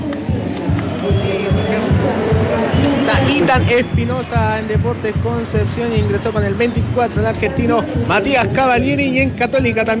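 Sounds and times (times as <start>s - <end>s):
stadium crowd ovation: 0.0s - 9.9s
speech: 3.2s - 9.9s.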